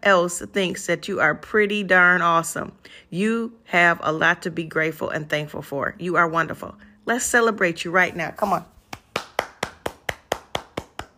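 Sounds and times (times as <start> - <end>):
speech: 0.0 - 8.7
single person clapping hands: 8.8 - 11.1.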